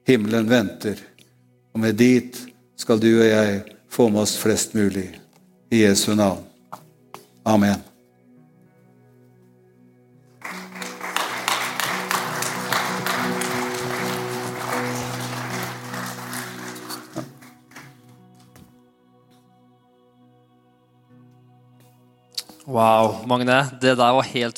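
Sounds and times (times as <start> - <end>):
speech: 0.1 - 1.1, 1.8 - 6.8, 7.4 - 7.9, 22.7 - 24.5
audience applauding: 10.4 - 18.2.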